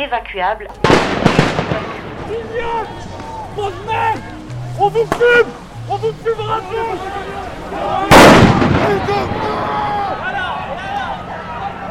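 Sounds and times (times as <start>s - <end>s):
speech: 0.0s - 9.8s
murmur of voices: 0.6s - 11.9s
grenade bangs fired by gendarmes: 0.8s - 3.3s, 8.1s - 9.8s.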